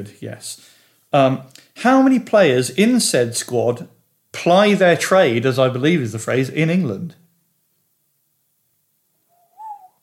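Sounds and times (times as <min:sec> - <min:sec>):
speech: 0:00.0 - 0:07.2
owl hooting: 0:09.2 - 0:10.0.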